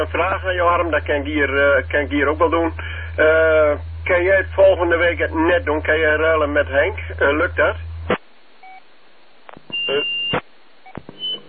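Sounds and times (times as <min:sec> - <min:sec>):
speech: 0:00.0 - 0:07.9
electronic beep: 0:09.7 - 0:11.4.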